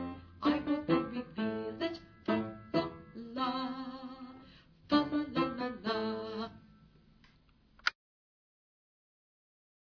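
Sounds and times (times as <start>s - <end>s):
tenor singing: 0.0s - 6.7s.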